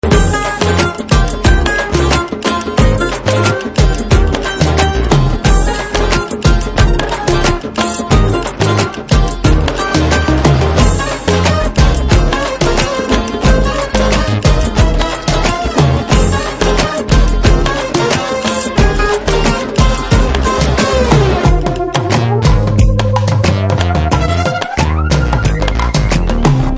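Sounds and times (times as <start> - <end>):
instrumental tone: 0.0 - 26.7.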